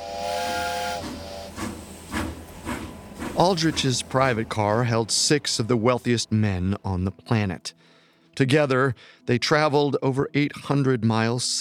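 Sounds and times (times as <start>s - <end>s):
steam train whistling: 0.0s - 6.0s
steam train chugging away from the station: 0.0s - 7.1s
speech: 3.4s - 11.5s.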